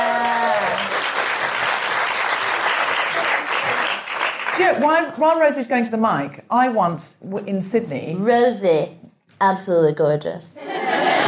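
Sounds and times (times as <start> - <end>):
audience applause: 0.0 - 5.0
speech: 4.6 - 10.7
laughter: 10.6 - 11.2.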